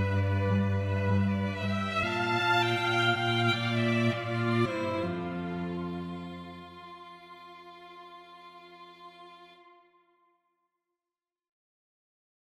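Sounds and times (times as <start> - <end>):
string trio playing: 0.0 - 9.9.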